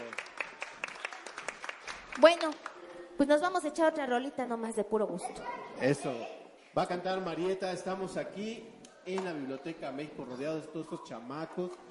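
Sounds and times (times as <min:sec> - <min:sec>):
light audience applause: 0:00.0 - 0:03.1
speech: 0:02.2 - 0:11.8.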